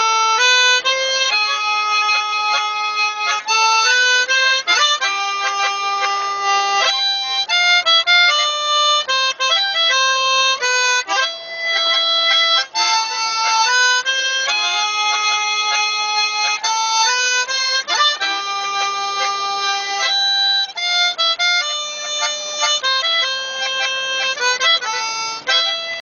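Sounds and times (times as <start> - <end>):
harmonica: 0.0 - 25.9.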